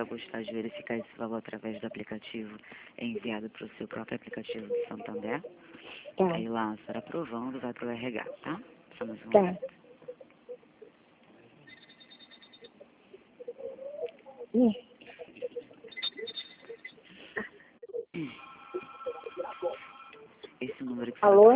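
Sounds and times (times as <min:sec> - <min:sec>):
speech: 0:00.0 - 0:09.8, 0:14.5 - 0:14.9, 0:21.0 - 0:21.5
narrowband voices talking on the phone line: 0:00.0 - 0:21.5
telephone tones of a dropped phone call: 0:11.7 - 0:12.8, 0:15.8 - 0:17.0, 0:18.4 - 0:20.3.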